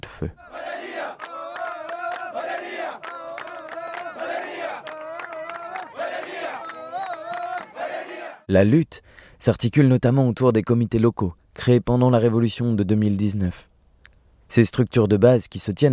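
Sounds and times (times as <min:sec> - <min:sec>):
speech: 0:00.2 - 0:00.5, 0:08.5 - 0:13.7, 0:14.5 - 0:15.9
protest crowd chanting revolutionary songs: 0:00.4 - 0:08.5.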